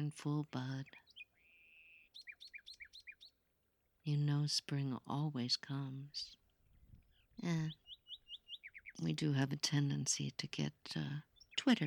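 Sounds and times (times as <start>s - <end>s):
speech: 0.0s - 1.0s, 4.0s - 6.4s, 7.4s - 7.8s, 9.0s - 11.8s
songbird singing in spring: 0.0s - 11.8s.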